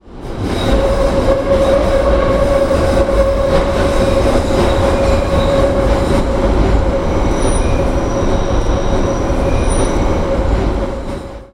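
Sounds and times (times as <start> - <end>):
Central Line underground train on a curve: 0.0 - 11.5.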